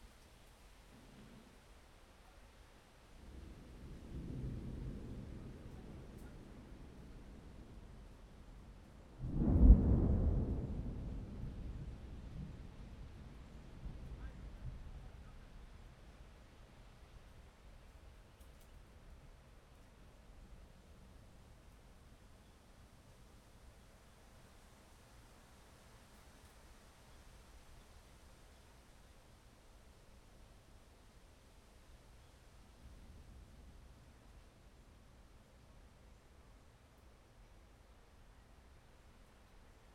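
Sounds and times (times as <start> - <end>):
thunderstorm: 3.2 - 16.1.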